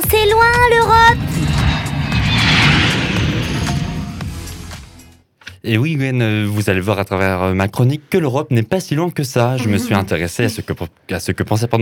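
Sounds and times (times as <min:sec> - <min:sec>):
airplane taking off: 0:00.0 - 0:05.1
speech: 0:00.2 - 0:01.0, 0:05.6 - 0:11.7.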